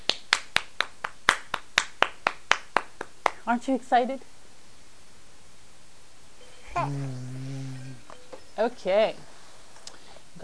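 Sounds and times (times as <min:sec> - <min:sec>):
child clapping hands: 0:00.0 - 0:03.4
speech: 0:03.4 - 0:04.3, 0:06.8 - 0:07.6, 0:08.6 - 0:09.3.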